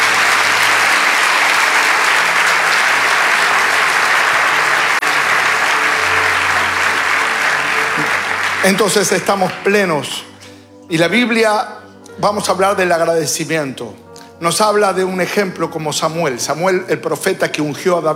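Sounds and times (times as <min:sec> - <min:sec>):
audience applause: 0:00.0 - 0:10.8
speech: 0:08.6 - 0:10.3, 0:10.9 - 0:18.1.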